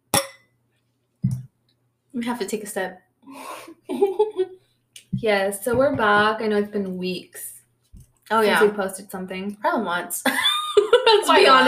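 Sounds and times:
wine glasses clinking: 0:00.2 - 0:00.5
speech: 0:02.2 - 0:04.6, 0:05.2 - 0:07.5, 0:08.3 - 0:10.5, 0:11.1 - 0:11.6
laughter: 0:03.8 - 0:04.5, 0:10.3 - 0:11.6.

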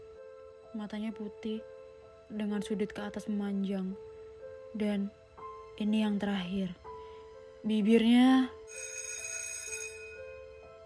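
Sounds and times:
speech: 0:00.7 - 0:04.1, 0:04.7 - 0:05.2, 0:05.8 - 0:06.8, 0:07.6 - 0:08.9
electric school bell ringing: 0:08.7 - 0:10.6.

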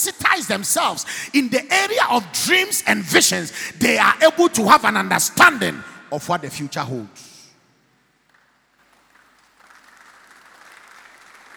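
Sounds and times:
speech: 0:00.5 - 0:07.3
crowd applauding: 0:08.3 - 0:11.5.

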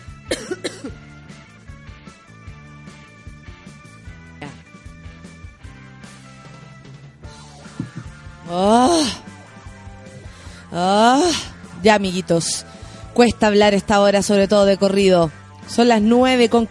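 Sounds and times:
person coughing: 0:00.3 - 0:01.0
speech: 0:08.5 - 0:09.2, 0:10.8 - 0:16.6.

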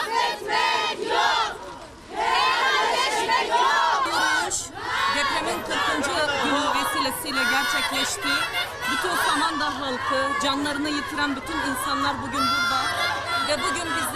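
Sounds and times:
crowd of women shouting slogans in unison: 0:00.0 - 0:14.1
speech: 0:09.0 - 0:14.1.

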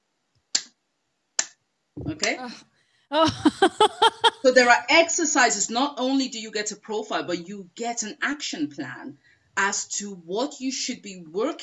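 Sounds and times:
sharp hand claps: 0:01.4 - 0:01.6
speech: 0:02.1 - 0:11.6
laughter: 0:03.2 - 0:04.8.

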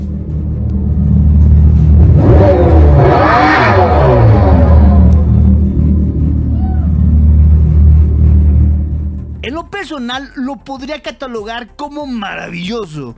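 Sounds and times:
Dodge Charger Daytona SRT Concept engine revving: 0:00.0 - 0:09.4
speech: 0:09.9 - 0:13.1.

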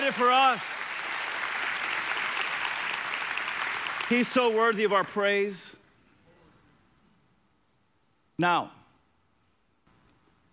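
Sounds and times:
audience clapping: 0:00.0 - 0:05.5
speech: 0:00.1 - 0:01.0, 0:04.1 - 0:05.8, 0:08.4 - 0:08.8.

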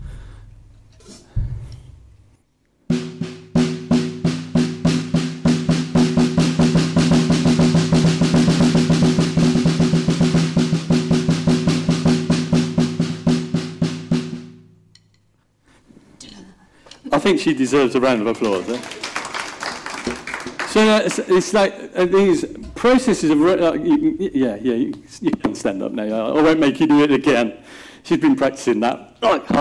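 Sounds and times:
drum paradiddle rudiment drill: 0:02.9 - 0:14.8, 0:20.0 - 0:27.4
speech: 0:17.3 - 0:19.0, 0:20.8 - 0:29.5.

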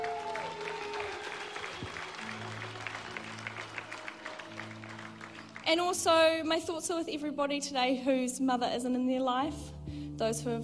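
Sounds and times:
audience clapping: 0:00.0 - 0:06.1
speech: 0:05.7 - 0:10.6.

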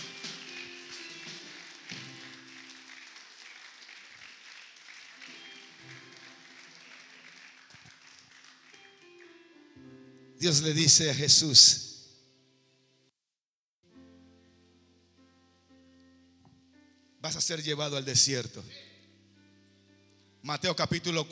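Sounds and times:
audience applauding: 0:00.0 - 0:09.7
speech: 0:10.4 - 0:11.8, 0:17.5 - 0:18.8, 0:20.5 - 0:21.3.

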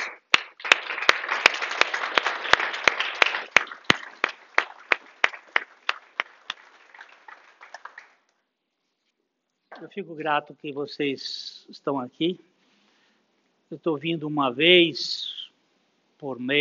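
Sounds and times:
audience applause: 0:00.0 - 0:08.3
loud steady claps in unison: 0:00.0 - 0:08.3
speech: 0:09.8 - 0:12.5, 0:13.7 - 0:15.3, 0:16.2 - 0:16.6.

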